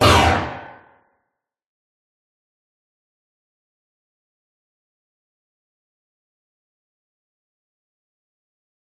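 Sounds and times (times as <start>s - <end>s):
threatening metallic impact burst descending into tonal resonance: 0.0s - 0.9s.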